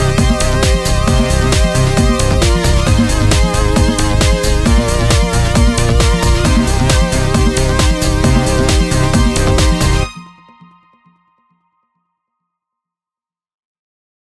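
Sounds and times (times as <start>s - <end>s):
conga beat: 0.0s - 10.1s.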